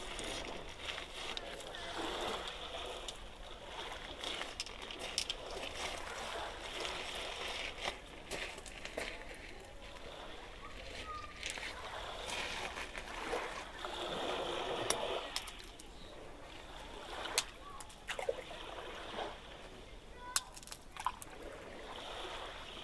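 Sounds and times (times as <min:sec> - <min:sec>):
gentle waves: 0:00.0 - 0:22.8
footsteps walking: 0:07.8 - 0:09.6.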